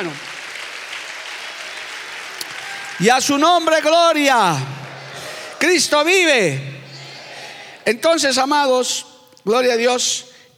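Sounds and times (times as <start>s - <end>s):
speech: 0.0s - 0.3s, 3.0s - 4.8s, 5.6s - 6.8s, 7.9s - 10.3s
audience applause: 0.0s - 8.1s.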